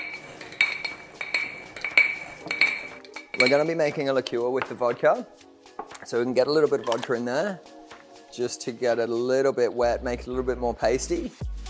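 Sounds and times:
muddler clinking against a glass jar while crushing nuts: 0:00.0 - 0:05.1
speech: 0:03.4 - 0:05.5, 0:06.1 - 0:07.7, 0:08.3 - 0:11.5.

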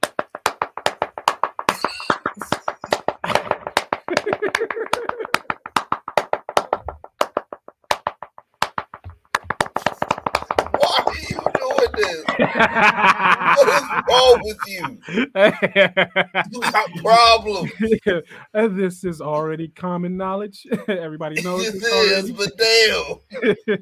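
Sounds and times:
hand clapping at a wrestling showcase: 0:00.0 - 0:14.9, 0:16.5 - 0:17.8, 0:21.4 - 0:23.1
speech: 0:02.4 - 0:02.6, 0:04.6 - 0:05.1, 0:12.1 - 0:23.8
laughter: 0:03.2 - 0:05.5, 0:10.7 - 0:18.4, 0:20.7 - 0:23.8.

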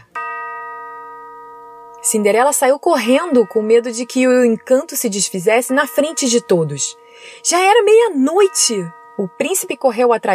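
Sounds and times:
clock striking midnight: 0:00.0 - 0:10.3
speech: 0:02.0 - 0:10.3.

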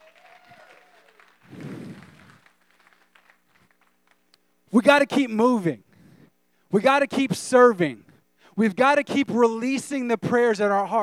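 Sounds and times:
audience hand clapping: 0:00.0 - 0:04.4
speech: 0:04.8 - 0:05.9, 0:06.7 - 0:11.0.

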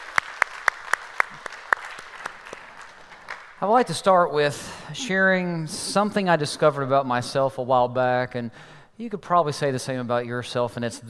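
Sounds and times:
church audience applauding to welcome a visiting family: 0:00.0 - 0:03.6
crisp evenly spaced claps: 0:00.0 - 0:03.7
speech: 0:03.6 - 0:11.0.

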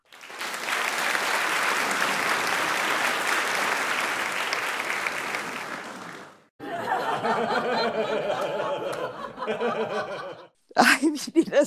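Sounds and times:
applause: 0:00.0 - 0:06.5, 0:08.3 - 0:09.2
laughter: 0:06.6 - 0:11.3
speech: 0:07.4 - 0:11.6.

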